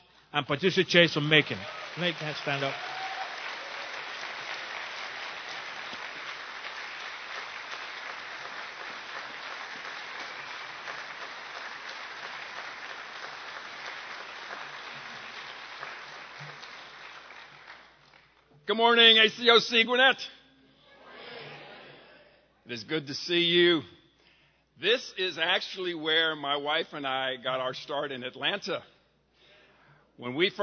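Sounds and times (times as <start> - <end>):
speech: 0.3 - 3.0, 18.8 - 20.4, 22.7 - 24.0, 24.8 - 28.9, 30.2 - 30.6
church congregation applauding to welcome guests: 0.9 - 19.5.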